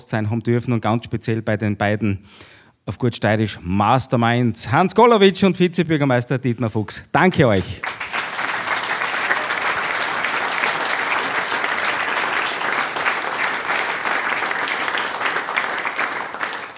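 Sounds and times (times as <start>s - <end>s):
speech: 0.1s - 7.9s
audience applause in a parish hall: 7.5s - 16.7s.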